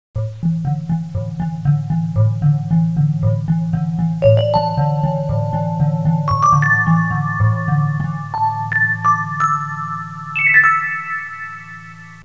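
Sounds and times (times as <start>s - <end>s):
mystical music ringtone: 0.2s - 12.2s.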